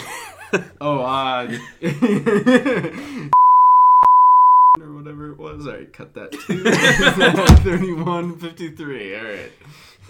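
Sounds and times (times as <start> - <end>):
speech: 0.5 - 3.5, 5.6 - 9.9
people chuckling and laughing: 1.4 - 3.1, 6.3 - 8.1
censorship bleep: 3.4 - 4.8.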